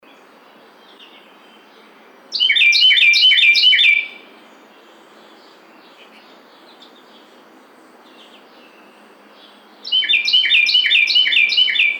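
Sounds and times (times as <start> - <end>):
Carolina wren song: 0.0 - 11.9.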